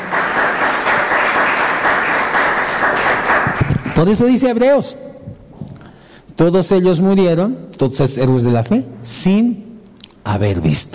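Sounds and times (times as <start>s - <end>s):
audience applause: 0.0s - 4.2s
speech: 4.0s - 5.1s, 6.4s - 9.6s, 10.2s - 10.9s.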